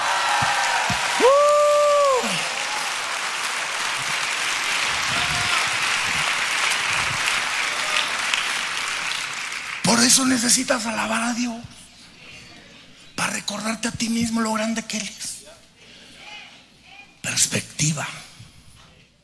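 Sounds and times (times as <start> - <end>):
audience applause: 0.0 - 10.6
speech: 0.4 - 1.5, 10.0 - 11.8, 13.5 - 15.4, 17.4 - 18.2.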